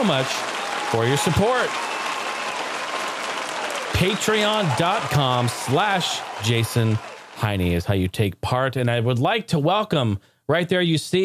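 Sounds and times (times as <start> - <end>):
speech: 0.0 - 2.0, 4.0 - 11.2
round of applause: 0.0 - 7.8.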